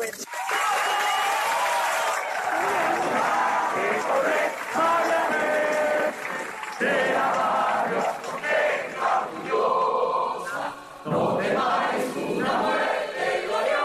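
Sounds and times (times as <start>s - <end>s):
crowd applauding outdoors: 0.1s - 9.9s
crowd shouting outdoors: 0.4s - 13.8s.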